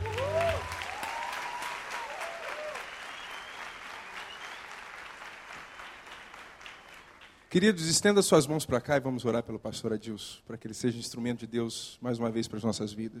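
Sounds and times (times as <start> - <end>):
audience applause: 0.0 - 7.5
speech: 7.5 - 13.1.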